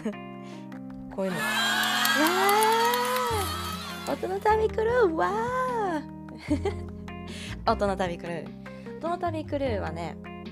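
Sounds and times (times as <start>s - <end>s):
speech: 0.0s - 0.6s, 1.2s - 2.5s, 4.1s - 5.7s, 6.4s - 6.9s, 7.7s - 10.3s
laughter: 1.3s - 4.2s
applause sound effect: 1.3s - 4.4s.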